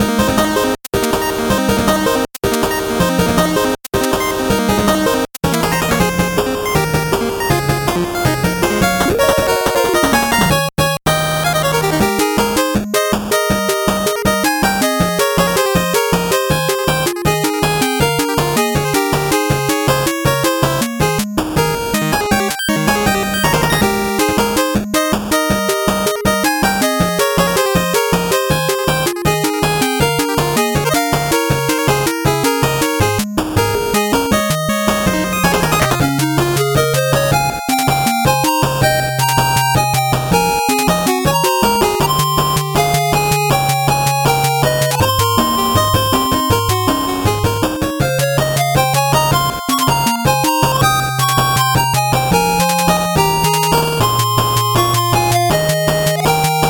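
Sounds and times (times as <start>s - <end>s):
8-bit background music: 0.1s - 56.6s.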